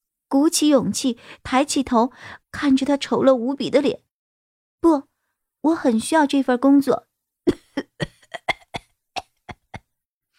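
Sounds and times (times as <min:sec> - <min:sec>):
speech: 0:00.3 - 0:04.1, 0:04.8 - 0:08.1
violent coughing: 0:07.5 - 0:09.8.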